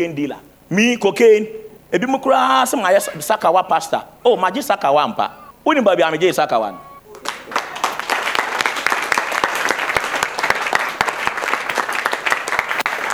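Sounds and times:
speech: 0:00.0 - 0:06.9
laughter: 0:01.1 - 0:13.1
audience clapping: 0:06.6 - 0:13.1.

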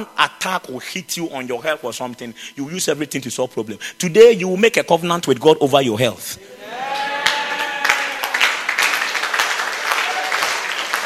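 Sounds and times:
speech: 0:00.0 - 0:06.9
audience clapping: 0:06.7 - 0:11.0.

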